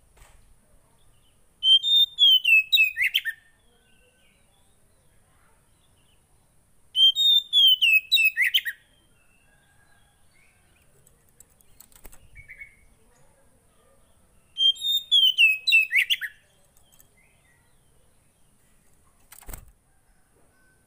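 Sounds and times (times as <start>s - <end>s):
brief thump: 0.1s - 0.5s
Oriental magpie-robin song: 1.0s - 18.6s.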